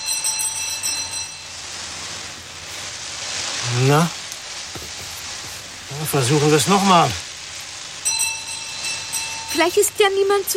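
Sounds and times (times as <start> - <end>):
pull-cord doorbell ringing: 0.0 - 1.5, 8.1 - 9.8
speech: 3.7 - 4.2, 6.0 - 7.2, 9.6 - 10.5.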